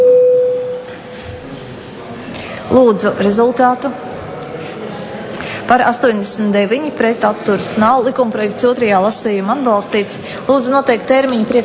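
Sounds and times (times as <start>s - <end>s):
parliament voting bell signal: 0.0s - 0.8s
speech: 2.8s - 4.1s, 5.7s - 11.6s.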